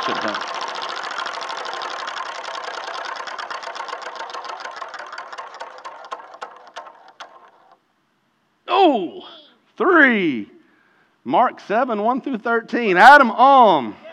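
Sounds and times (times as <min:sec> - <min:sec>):
game-show prize wheel spun hard: 0:00.0 - 0:07.8
speech: 0:08.9 - 0:10.5, 0:11.2 - 0:14.0.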